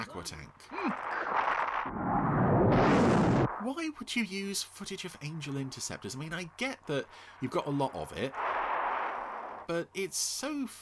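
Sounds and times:
speech: 0.0 - 1.2, 3.6 - 8.5, 9.7 - 10.7
tank from Joe 90 opening fire, TV sound effect: 0.9 - 3.7, 7.1 - 9.7.

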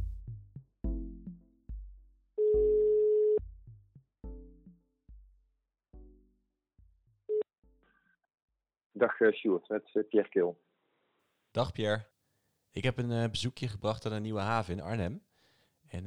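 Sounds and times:
phone ringing tone: 2.4 - 3.4
speech: 9.0 - 10.7, 11.6 - 12.1, 12.7 - 15.3, 15.9 - 16.0.

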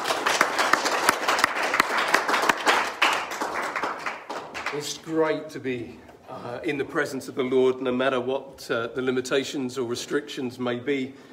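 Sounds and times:
audience clapping: 0.0 - 5.2
speech: 4.8 - 11.3.

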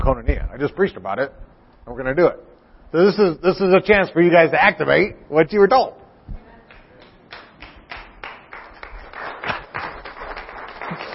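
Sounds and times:
speech: 0.0 - 6.4
audience clapping: 6.6 - 11.1.

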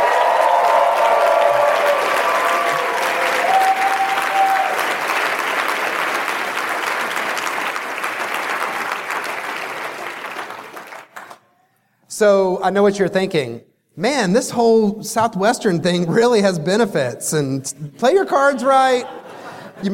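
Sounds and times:
faint voices and whoops: 0.0 - 4.8
audience applause: 0.0 - 11.4
speech: 12.2 - 19.9.

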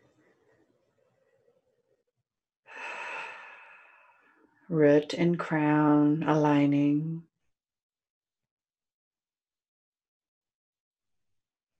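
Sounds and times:
loud rushing exhale: 2.7 - 4.4
deep breath taken during a guided meditation: 2.7 - 4.5
speech: 4.7 - 7.3.

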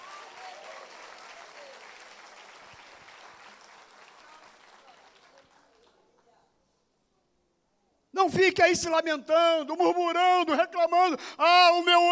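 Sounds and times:
applause: 0.0 - 6.4
speech: 8.2 - 12.1.

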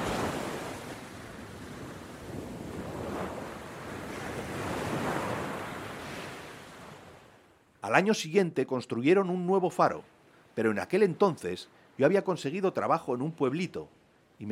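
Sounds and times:
waves beating against the shore: 0.0 - 7.4
speech: 7.9 - 14.4.

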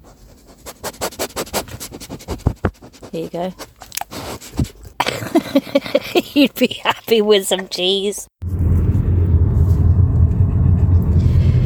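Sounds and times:
speech: 3.2 - 3.7, 5.1 - 8.3
car engine rumble driving around Bristol: 8.4 - 11.6.

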